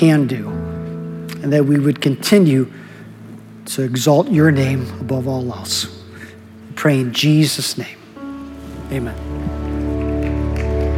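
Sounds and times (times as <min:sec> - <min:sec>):
speech: 0:00.0 - 0:00.6, 0:01.4 - 0:02.8, 0:03.6 - 0:06.0, 0:06.8 - 0:08.0, 0:08.9 - 0:09.6
crowd audience clapping: 0:09.0 - 0:10.9.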